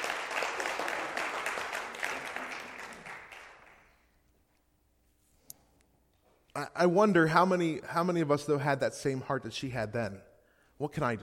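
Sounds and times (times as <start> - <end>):
audience applause: 0.0 - 4.0
speech: 6.6 - 11.2.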